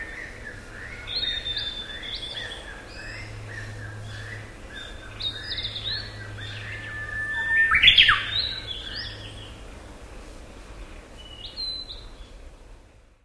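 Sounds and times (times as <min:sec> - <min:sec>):
black paradise flycatcher: 0:00.0 - 0:09.6.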